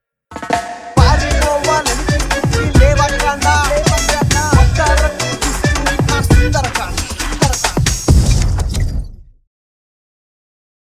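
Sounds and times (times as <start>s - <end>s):
interval background music: 0.3s - 8.2s.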